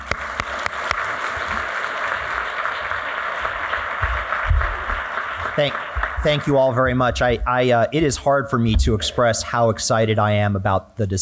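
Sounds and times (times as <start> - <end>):
audience applause for a panel at a public event: 0.0 - 7.7
speech: 5.6 - 11.2.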